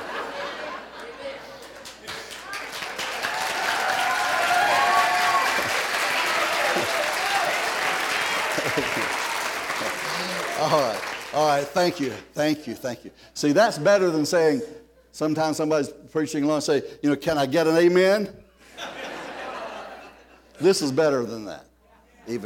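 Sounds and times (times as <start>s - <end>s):
laughter: 0.0s - 2.4s, 5.5s - 11.2s, 18.6s - 20.6s
audience clapping hands: 1.0s - 12.3s
speech: 10.6s - 18.9s, 20.6s - 21.7s, 22.3s - 22.4s.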